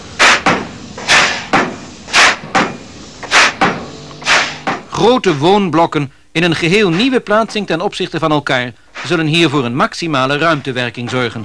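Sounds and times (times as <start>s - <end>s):
pile driver thuds on a pile: 0.2s - 4.9s
speech: 5.0s - 11.4s.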